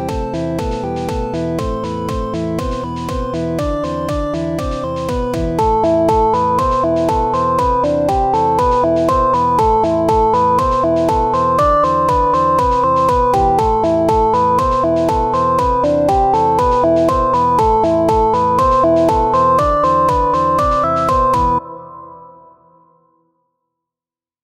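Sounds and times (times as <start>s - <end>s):
chiptune music: 0.0s - 22.3s.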